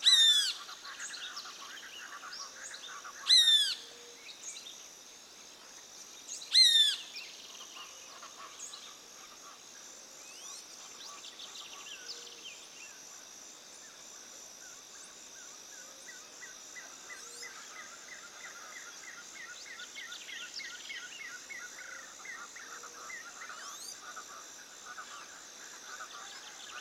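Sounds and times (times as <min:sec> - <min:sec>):
birds in daytime forest near Tarapoto: 0:00.0 - 0:04.9, 0:05.7 - 0:13.2, 0:14.7 - 0:26.7
insects in daytime forest near Tarapoto: 0:00.0 - 0:26.7.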